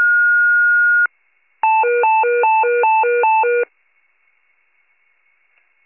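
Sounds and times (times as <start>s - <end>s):
fire pager alert: 0.1s - 3.7s.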